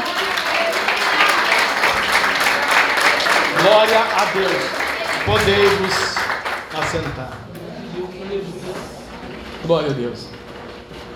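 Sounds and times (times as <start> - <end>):
audience applause: 0.0 - 8.0
speech: 3.6 - 7.5, 9.7 - 10.4.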